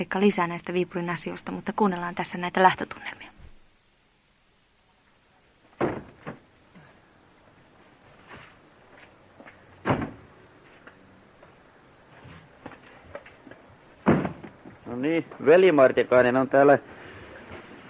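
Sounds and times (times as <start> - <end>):
speech: 0.0 - 3.3, 15.1 - 17.0
brown cardboard boxes tossed into a van: 5.8 - 6.5, 9.8 - 10.3, 14.0 - 14.8.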